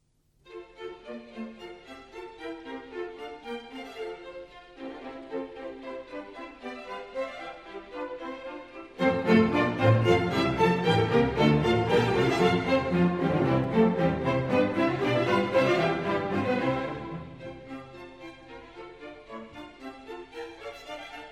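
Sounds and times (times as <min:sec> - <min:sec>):
bourree: 0:00.5 - 0:21.3.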